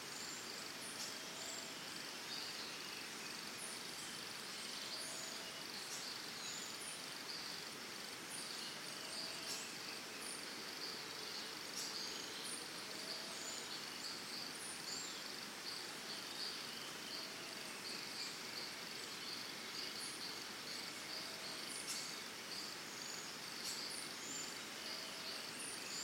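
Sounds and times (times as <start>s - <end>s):
birds in early morning in Costa Rica: 0.0s - 26.0s
crickets in early morning in Costa Rica: 0.0s - 26.0s.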